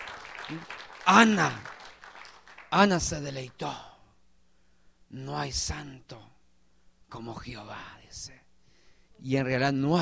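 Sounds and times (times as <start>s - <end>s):
audience applause: 0.0s - 2.8s
speech: 0.5s - 1.7s, 2.7s - 3.9s, 5.1s - 6.3s, 7.1s - 8.4s, 9.2s - 10.0s.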